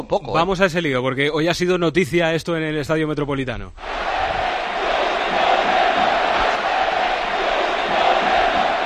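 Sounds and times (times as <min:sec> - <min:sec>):
speech: 0:00.1 - 0:04.3
football stadium crowd chanting: 0:03.8 - 0:08.8.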